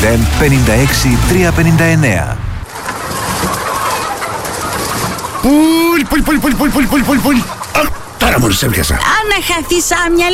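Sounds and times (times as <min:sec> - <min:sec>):
speech: 0:00.0 - 0:02.4, 0:05.4 - 0:10.3
hens in a chicken coop: 0:02.6 - 0:09.2.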